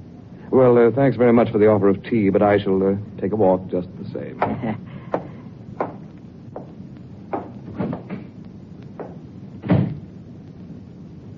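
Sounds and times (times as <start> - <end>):
speech: 0.5 - 4.9
door opening and closing: 7.4 - 8.3, 9.6 - 10.1.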